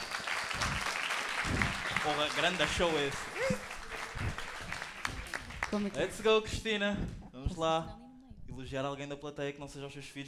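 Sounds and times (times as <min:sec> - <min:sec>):
audience applause: 0:00.0 - 0:06.4
speech: 0:02.0 - 0:03.6, 0:05.7 - 0:10.2.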